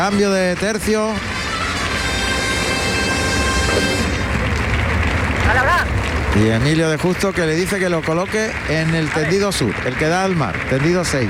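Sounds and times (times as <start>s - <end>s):
speech: 0.0s - 1.4s, 5.5s - 11.2s
bullring crowd ovation: 0.0s - 11.2s.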